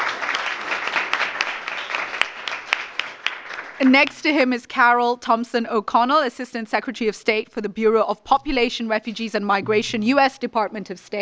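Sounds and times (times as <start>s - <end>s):
audience applause: 0.0s - 3.8s
speech: 3.8s - 11.1s.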